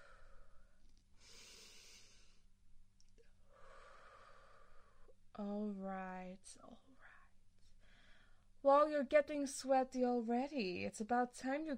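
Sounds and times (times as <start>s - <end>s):
slow deep breathing: 0.0s - 2.5s, 3.3s - 5.2s, 7.2s - 8.6s
speech: 5.4s - 7.1s, 8.6s - 11.7s.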